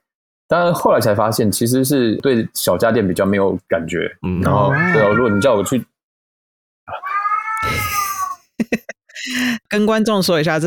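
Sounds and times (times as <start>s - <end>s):
speech: 0.5s - 5.9s, 8.7s - 10.6s
cat meowing: 4.4s - 5.8s, 6.9s - 8.4s.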